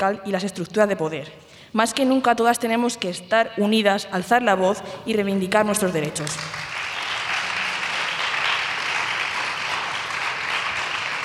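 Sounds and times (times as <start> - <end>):
speech: 0.0 - 6.8
audience applause: 6.4 - 11.2.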